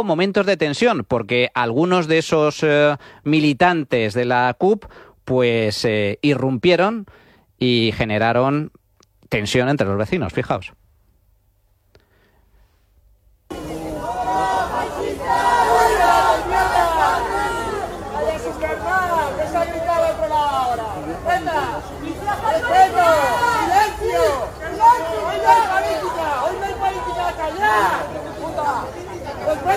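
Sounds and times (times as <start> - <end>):
speech: 0.0 - 10.8
people shouting: 13.5 - 29.7.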